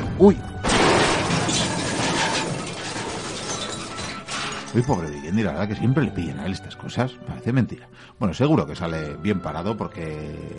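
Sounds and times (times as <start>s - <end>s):
speech: 0.2s - 0.5s, 4.7s - 10.5s
cannonball impact crash of shattering debris: 0.6s - 5.0s.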